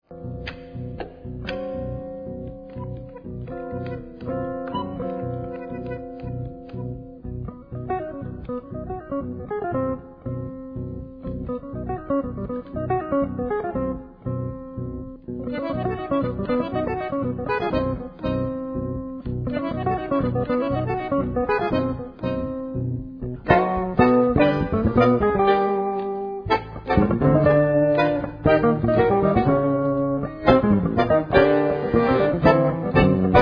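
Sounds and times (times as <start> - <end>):
jazz tango music: 0.0 - 33.4.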